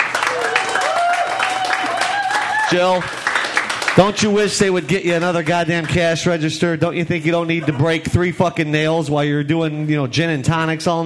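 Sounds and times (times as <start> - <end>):
comedy club audience applauding the bartender: 0.0 - 6.0
crowd noise: 0.0 - 11.0
speech: 2.7 - 3.2, 4.0 - 11.0.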